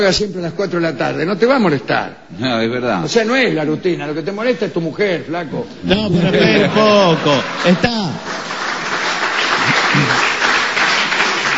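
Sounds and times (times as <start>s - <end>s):
speech: 0.0s - 8.4s
laughter: 5.9s - 8.6s, 9.4s - 10.4s
woman applauding enthusiastically: 8.3s - 11.5s.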